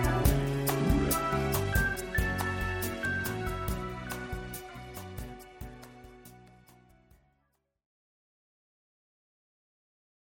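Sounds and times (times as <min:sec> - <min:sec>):
instrumental music: 0:00.0 - 0:07.4.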